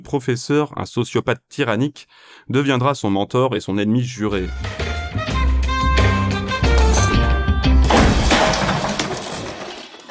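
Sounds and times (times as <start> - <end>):
speech: 0.0 - 4.9
band music: 4.3 - 7.8
chair thrown and crashing: 6.7 - 10.1.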